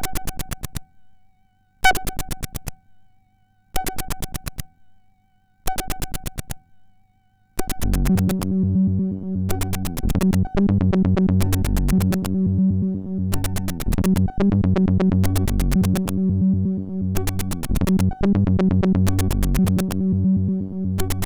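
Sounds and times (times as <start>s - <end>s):
MOS6581R4 SID chip music: 7.6s - 12.4s, 13.0s - 21.2s.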